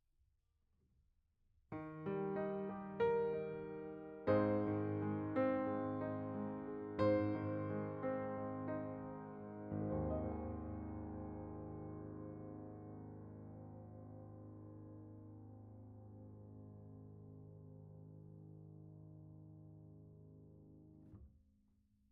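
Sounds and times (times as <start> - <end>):
piano note B: 1.8 - 20.2.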